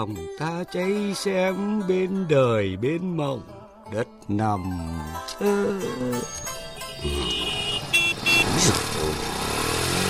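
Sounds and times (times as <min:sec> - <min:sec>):
speech: 0:00.0 - 0:07.6
motorcycles and cars driving past on a road: 0:06.8 - 0:10.0.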